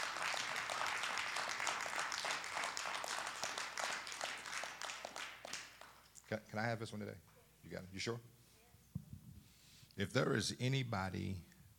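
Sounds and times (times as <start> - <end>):
audience hand clapping: 0.0 - 6.3
speech: 6.3 - 8.4, 10.0 - 11.5.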